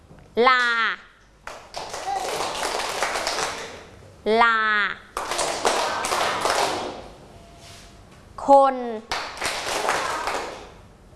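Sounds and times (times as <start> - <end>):
speech: 0.4 - 1.0, 4.2 - 5.0, 8.5 - 9.1
children clapping hands: 1.4 - 3.9, 5.1 - 7.1, 9.1 - 10.8.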